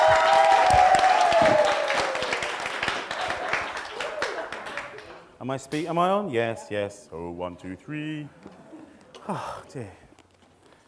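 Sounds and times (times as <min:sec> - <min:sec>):
high whoop or whistle: 0:00.0 - 0:02.3
audience applause: 0:00.0 - 0:05.2
speech: 0:05.5 - 0:08.5, 0:09.3 - 0:10.0.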